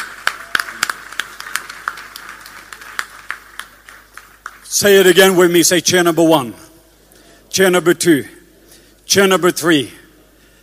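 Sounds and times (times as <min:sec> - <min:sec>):
audience applauding: 0:00.0 - 0:04.7
speech: 0:04.7 - 0:06.6, 0:07.6 - 0:08.4, 0:09.1 - 0:10.0.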